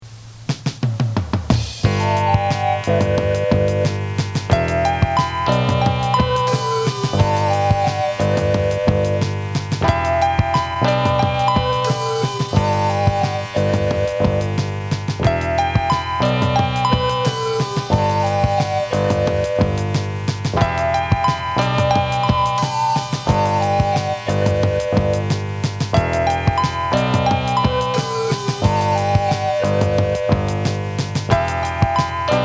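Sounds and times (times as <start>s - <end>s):
instrumental music: 0.1s - 32.4s.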